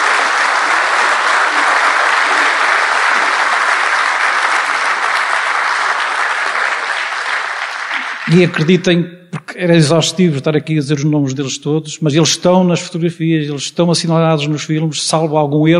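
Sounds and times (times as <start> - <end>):
audience applause: 0.0 - 8.7
speech: 8.3 - 15.7.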